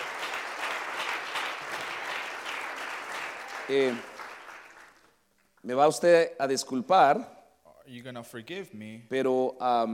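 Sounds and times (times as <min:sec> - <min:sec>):
audience clap offering: 0:00.0 - 0:05.1
speech: 0:03.7 - 0:04.1, 0:05.6 - 0:09.9.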